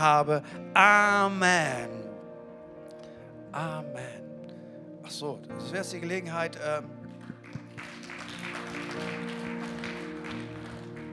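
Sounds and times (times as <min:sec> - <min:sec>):
speech: 0:00.0 - 0:02.0, 0:03.6 - 0:04.2, 0:05.1 - 0:07.0
clapping: 0:07.1 - 0:11.1.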